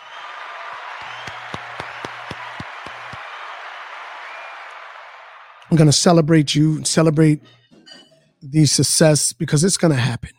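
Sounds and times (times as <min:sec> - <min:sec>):
hand claps: 0:00.0 - 0:05.7
speech: 0:05.7 - 0:07.6, 0:08.4 - 0:10.3.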